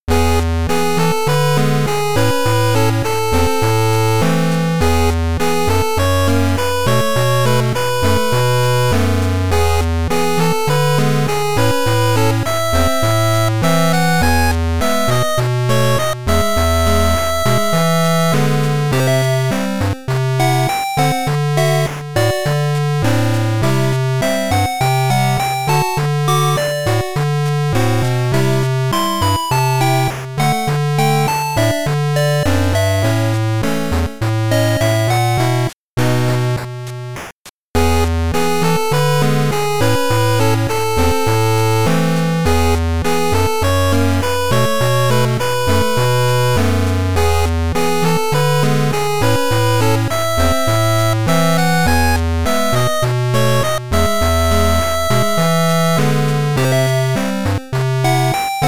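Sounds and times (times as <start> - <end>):
8bit peaceful bossa nova game music: 0.1 - 58.6.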